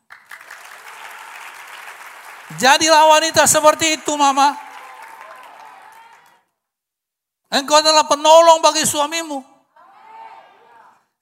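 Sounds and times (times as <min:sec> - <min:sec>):
audience applause: 0:00.0 - 0:06.4
speech: 0:02.5 - 0:04.6, 0:07.5 - 0:09.5.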